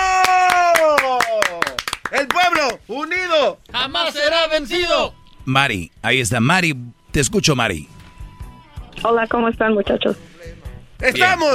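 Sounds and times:
people clapping: 0:00.0 - 0:02.9
speech: 0:02.6 - 0:08.0, 0:09.0 - 0:11.5.

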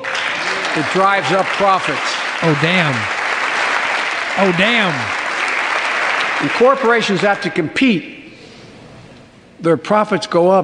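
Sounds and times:
applause: 0:00.0 - 0:08.0
audience cheering: 0:00.0 - 0:08.3
speech: 0:00.8 - 0:03.2, 0:04.4 - 0:05.2, 0:06.4 - 0:08.1, 0:09.6 - 0:10.6.

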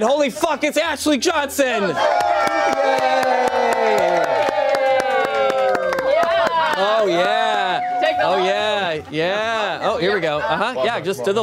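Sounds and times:
speech: 0:00.0 - 0:04.5, 0:06.8 - 0:07.4, 0:08.2 - 0:11.4
studio audience whooping voices: 0:01.8 - 0:09.1
studio audience clapping: 0:02.0 - 0:09.6.

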